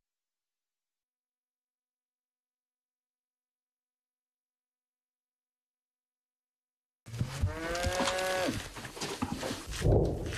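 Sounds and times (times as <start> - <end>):
cow mooing: 7.1 - 8.6
outdoor noise: 7.1 - 10.3
rustle: 7.1 - 10.3.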